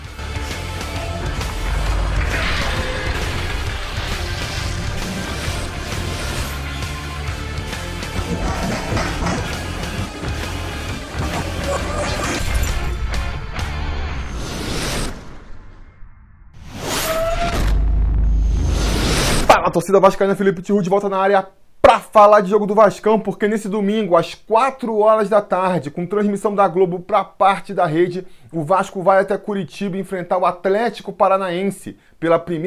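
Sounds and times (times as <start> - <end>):
show opening theme music: 0.0 - 14.6
crash sound effects: 1.0 - 7.2, 8.0 - 19.5
speech: 19.8 - 32.6.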